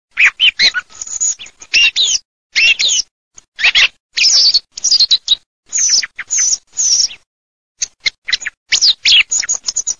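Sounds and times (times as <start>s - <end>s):
thrush birdsong: 0.1s - 9.9s.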